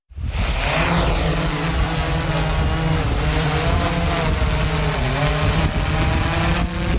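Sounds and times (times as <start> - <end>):
drone flying: 0.2 - 6.9.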